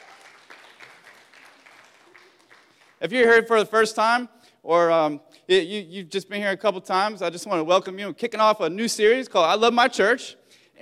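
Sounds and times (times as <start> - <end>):
church congregation applauding: 0.0 - 3.4
speech: 3.0 - 10.8.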